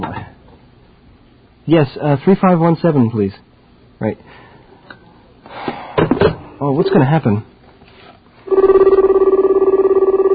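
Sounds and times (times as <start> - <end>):
speech: 1.7 - 4.4, 6.6 - 7.5
telephone ringing: 8.5 - 10.3.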